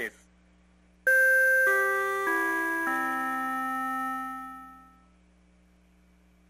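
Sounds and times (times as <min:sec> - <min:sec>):
tsunami advisory siren: 0:01.1 - 0:04.9.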